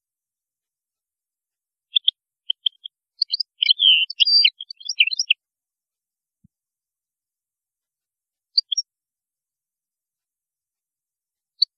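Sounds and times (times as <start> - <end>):
European goldfinch song: 1.9 - 5.4, 8.5 - 8.9, 11.6 - 11.7.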